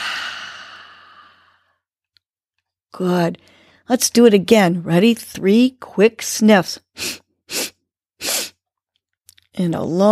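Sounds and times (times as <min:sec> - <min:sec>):
long breathy exhale through the mouth: 0:00.0 - 0:01.7
speech: 0:03.0 - 0:07.6, 0:09.6 - 0:10.1.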